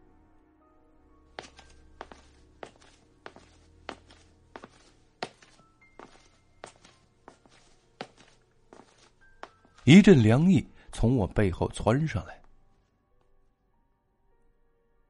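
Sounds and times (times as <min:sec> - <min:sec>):
shoes stepping on a floor: 0:01.4 - 0:09.9
speech: 0:09.9 - 0:12.4.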